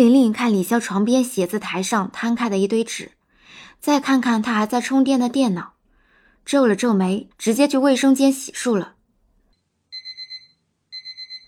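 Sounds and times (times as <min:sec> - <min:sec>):
speech: 0:00.0 - 0:05.7, 0:06.4 - 0:09.0
electronic alarm clock beeping: 0:09.9 - 0:11.4.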